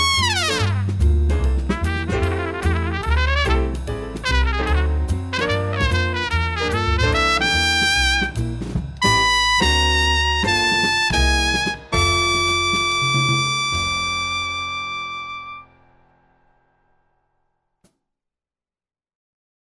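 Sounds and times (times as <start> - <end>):
trumpet playing a swing etude: 0.0 - 15.8.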